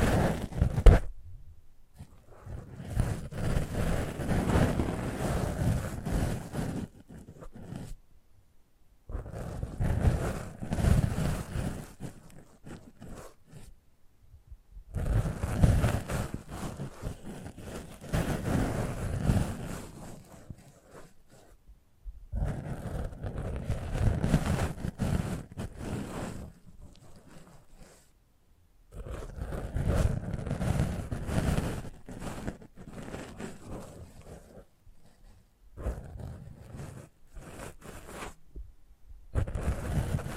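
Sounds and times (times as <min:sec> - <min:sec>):
microphone handling and rubbing: 0:00.0 - 0:08.0, 0:09.1 - 0:13.8, 0:14.4 - 0:28.1, 0:28.9 - 0:40.3.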